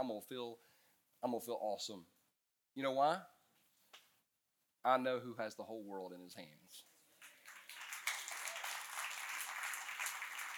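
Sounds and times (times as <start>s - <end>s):
speech: 0.0s - 2.2s, 2.8s - 3.4s, 4.8s - 6.9s
audience clapping: 7.2s - 10.5s.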